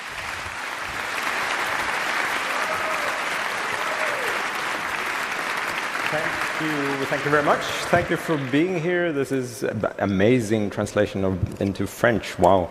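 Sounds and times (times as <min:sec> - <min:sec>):
audience applause: 0:00.0 - 0:09.6
speech: 0:06.1 - 0:12.6.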